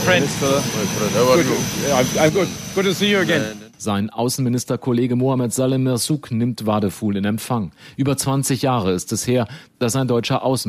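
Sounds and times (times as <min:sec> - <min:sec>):
jet airplane at airport after landing: 0:00.0 - 0:03.7
speech: 0:00.0 - 0:10.6.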